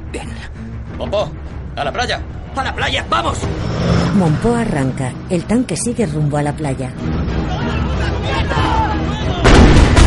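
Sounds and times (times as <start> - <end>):
speech: 0.1 - 8.8
heavy artillery fire from coastal positions at ships in a war film: 9.4 - 10.0.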